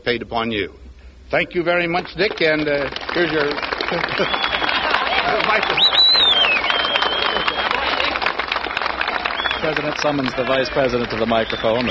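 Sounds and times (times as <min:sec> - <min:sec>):
speech: 0:00.1 - 0:04.5, 0:05.3 - 0:06.3, 0:09.6 - 0:11.8
crowd cheering: 0:02.4 - 0:11.8.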